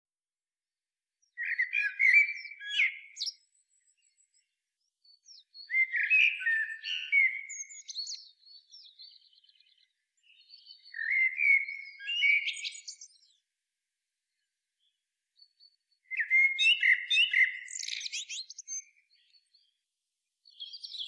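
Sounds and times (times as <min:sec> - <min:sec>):
common blackbird singing: 0:01.2 - 0:13.4, 0:15.6 - 0:19.8, 0:20.5 - 0:21.0.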